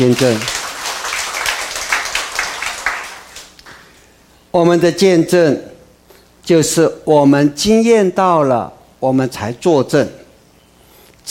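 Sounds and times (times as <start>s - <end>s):
speech: 0.0s - 0.5s, 4.5s - 5.7s, 6.5s - 10.2s
applause: 0.0s - 3.9s.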